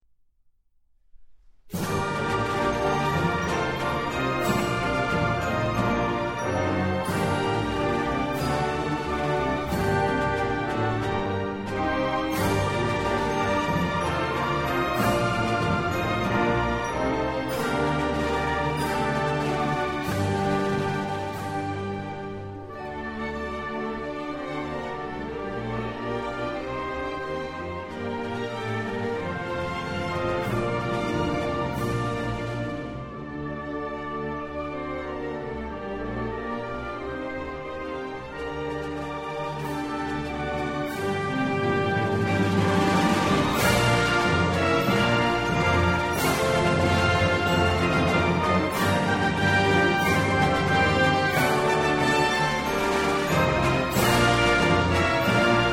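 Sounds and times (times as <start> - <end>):
instrumental national anthem: 1.7 - 55.7.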